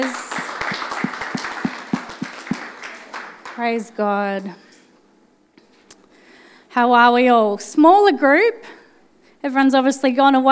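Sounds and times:
audience clapping: 0:00.0 - 0:04.5
speech: 0:03.6 - 0:04.6, 0:06.8 - 0:08.8, 0:09.4 - 0:10.5.

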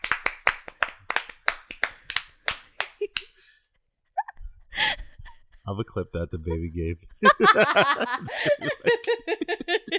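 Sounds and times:
clapping: 0:00.0 - 0:03.3
speech: 0:05.7 - 0:09.9
laughter: 0:06.3 - 0:09.9.

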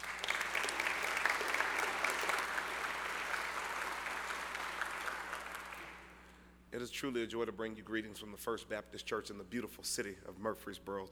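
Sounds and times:
audience clapping: 0:00.0 - 0:06.2
speech: 0:06.8 - 0:11.0.

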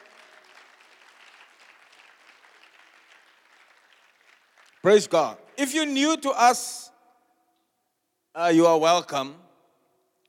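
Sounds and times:
audience applause: 0:00.0 - 0:05.0
speech: 0:04.8 - 0:06.9, 0:08.4 - 0:09.4.

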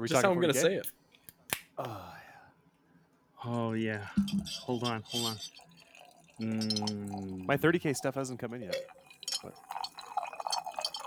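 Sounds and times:
speech: 0:00.0 - 0:01.0, 0:01.8 - 0:02.2, 0:03.4 - 0:05.7, 0:06.4 - 0:09.7
drink pouring into a glass: 0:04.0 - 0:11.0
glass clink: 0:04.2 - 0:08.1, 0:08.7 - 0:11.0.

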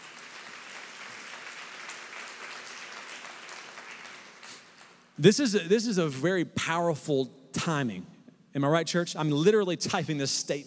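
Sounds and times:
church congregation clapping: 0:00.0 - 0:05.2
speech: 0:05.2 - 0:10.6.

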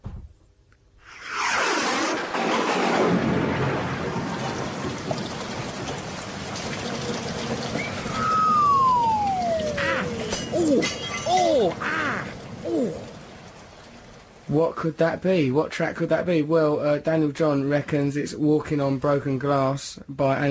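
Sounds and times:
hissing rain: 0:01.0 - 0:19.4
thunder crash: 0:01.4 - 0:14.5
falling whistle-like tones: 0:07.7 - 0:11.5
speech: 0:14.8 - 0:20.5.

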